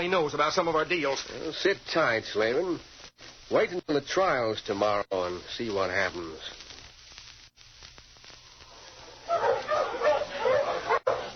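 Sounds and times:
speech: 0.0 - 6.6
pack of dogs barking at a sled-pulling contest: 8.8 - 11.3.

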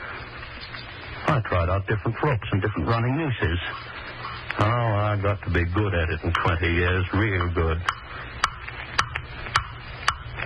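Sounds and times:
low murky hum: 0.0 - 10.4
speech: 1.4 - 4.0, 4.6 - 8.0
clock ticking: 3.5 - 10.3.

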